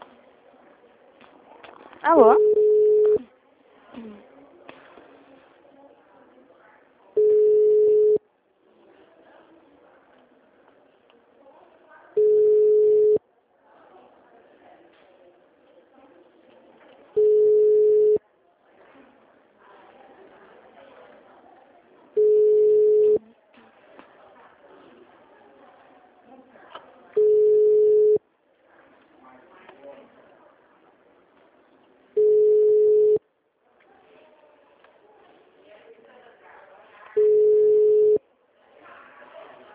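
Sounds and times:
speech: 2.0 - 2.5
recorded voice: 2.0 - 3.3
telephone busy signal: 2.3 - 3.2, 7.2 - 8.2, 12.2 - 13.2, 17.2 - 18.2, 22.2 - 23.2, 27.2 - 28.2, 32.2 - 33.2, 37.2 - 38.2.

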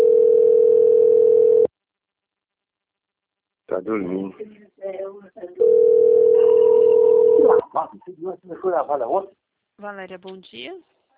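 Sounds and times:
telephone tone signalling an incoming call from a bank: 0.0 - 1.7, 5.6 - 7.6
speech: 3.8 - 6.3, 7.4 - 11.0.

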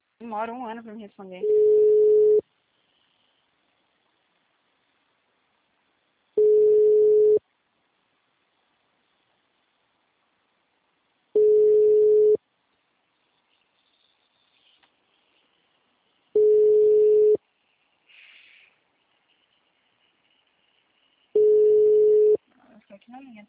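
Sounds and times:
speech: 0.2 - 2.1, 23.1 - 23.4
telephone busy signal beeps after placing a call: 1.4 - 2.4, 6.4 - 7.4, 11.4 - 12.4, 16.4 - 17.4, 21.4 - 22.4.

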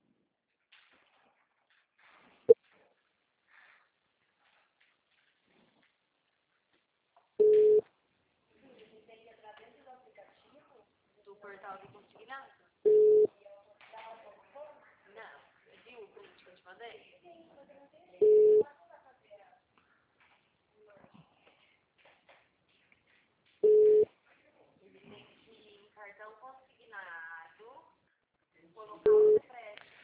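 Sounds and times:
telephone line tones after a dropped call: 7.4 - 7.8, 12.9 - 13.3, 18.2 - 18.6
person talking: 28.9 - 29.5.

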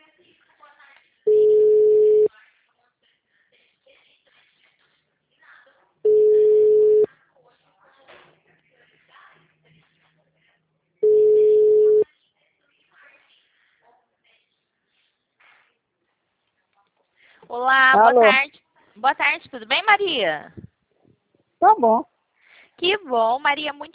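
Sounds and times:
telephone line tone while a call is being placed: 1.3 - 2.3, 6.1 - 7.1, 11.0 - 12.0
speech: 19.1 - 20.6, 21.6 - 22.1, 22.8 - 23.9.

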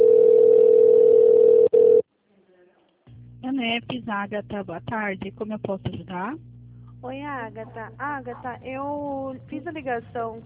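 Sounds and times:
telephone connecting tone on a company's phone line: 0.0 - 2.0
speech: 3.8 - 10.4.

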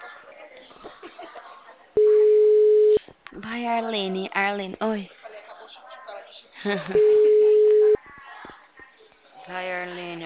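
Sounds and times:
telephone ringback tone on an unanswered call: 2.0 - 3.0, 7.0 - 8.0
speech: 3.5 - 5.2, 6.6 - 7.2, 9.5 - 10.2.

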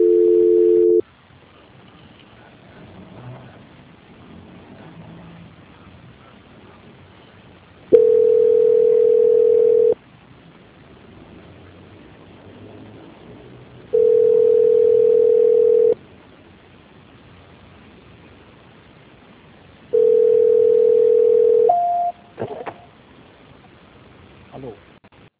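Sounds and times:
telephone line beeps as a call drops during transfer: 0.0 - 1.0, 8.0 - 10.0, 14.0 - 16.0, 20.0 - 22.2.

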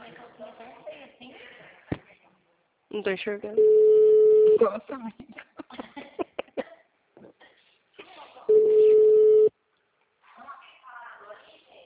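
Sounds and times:
speech: 2.9 - 3.9, 4.5 - 5.4
telephone tone from a failed phone call: 3.6 - 4.6, 8.5 - 9.5.

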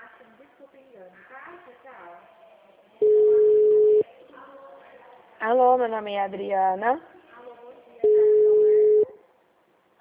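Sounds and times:
faint noise: 0.0 - 10.0
unanswered telephone call ringing tone: 3.0 - 4.0, 8.0 - 9.1
speech: 5.4 - 7.1.

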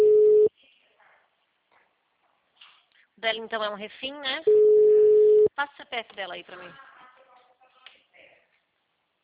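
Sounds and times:
telephone busy signal: 0.0 - 0.5, 4.5 - 5.5
speech: 3.2 - 4.8, 5.5 - 6.9.

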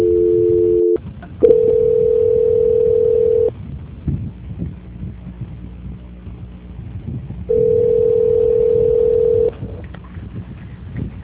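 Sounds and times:
telephone transfer tones on a call line: 0.0 - 3.5, 7.5 - 9.5
low murmur of line noise: 0.0 - 11.2.

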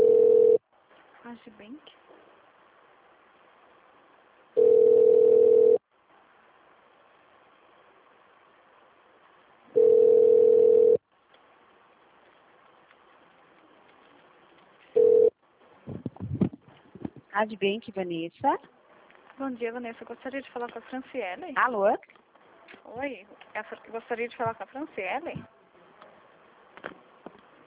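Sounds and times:
phone ringback tone during a bank call transfer: 0.0 - 0.6, 4.6 - 5.8, 9.8 - 11.0, 15.0 - 15.3
speech: 17.4 - 18.8, 19.4 - 22.2, 22.9 - 25.5.

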